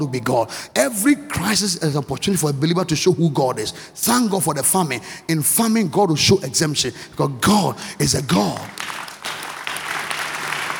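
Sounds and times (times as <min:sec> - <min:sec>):
speech: 0:00.0 - 0:09.0
audience clapping: 0:08.3 - 0:10.7.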